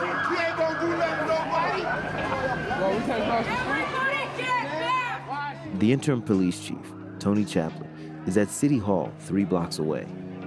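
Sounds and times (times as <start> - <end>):
steady siren-like tone: 0.0 - 3.9
crowd jeering and heckling police: 0.0 - 5.6
speech: 3.1 - 4.0, 5.8 - 10.2.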